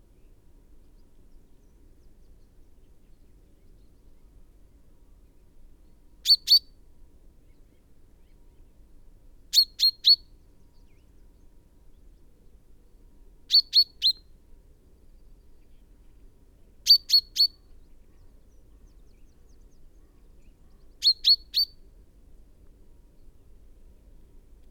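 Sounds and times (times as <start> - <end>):
common chaffinch Fringilla coelebs song with descending notes and flourish: 6.2 - 6.7, 13.5 - 14.4, 16.9 - 21.9.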